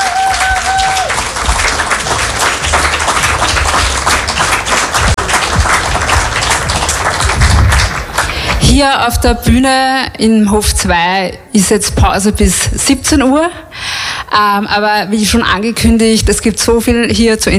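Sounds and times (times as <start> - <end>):
audience applause after a concert: 0.0 - 8.7
speech: 8.8 - 17.5.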